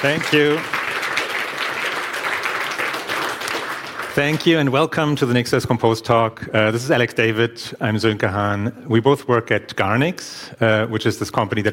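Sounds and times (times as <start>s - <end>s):
speech: 0.0s - 0.8s, 4.2s - 11.7s
audience applause: 0.0s - 4.7s.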